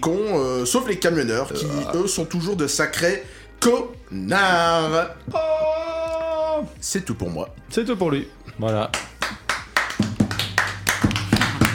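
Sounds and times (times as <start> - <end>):
speech: 0.0 - 5.7, 6.8 - 9.1
hand clapping: 8.6 - 11.7.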